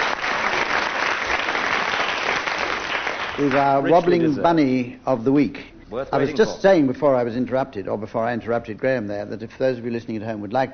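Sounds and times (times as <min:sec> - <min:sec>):
audience applause: 0:00.0 - 0:03.8
speech: 0:03.4 - 0:10.7.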